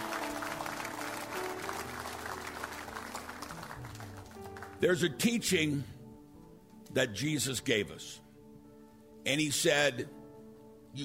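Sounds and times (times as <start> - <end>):
audience applause: 0.0 - 4.8
speech: 4.8 - 6.0, 6.9 - 8.2, 9.2 - 10.2.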